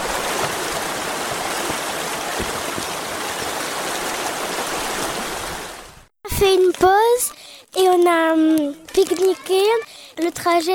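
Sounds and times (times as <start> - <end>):
flowing water of a forest stream: 0.0 - 6.1
speech: 6.4 - 10.7.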